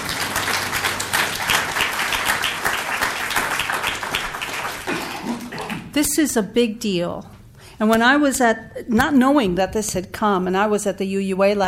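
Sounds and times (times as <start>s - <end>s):
audience applauding: 0.0s - 5.9s
speech: 6.0s - 11.6s.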